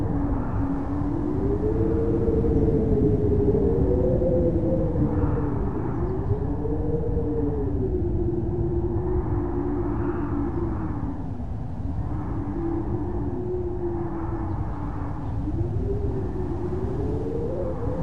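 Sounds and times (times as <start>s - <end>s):
wind drone moaning in hallway: 0.0s - 18.0s.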